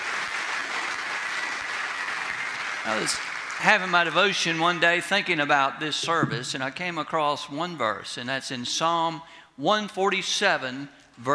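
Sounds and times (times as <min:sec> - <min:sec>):
church congregation applauding the music ministry at Pleasant Valley South: 0:00.0 - 0:05.0
speech: 0:02.8 - 0:11.3.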